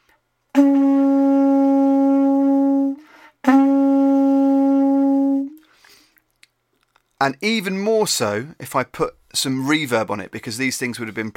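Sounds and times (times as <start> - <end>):
ancient conch shell horn being blown: 0.5 - 5.6
speech: 7.2 - 11.3.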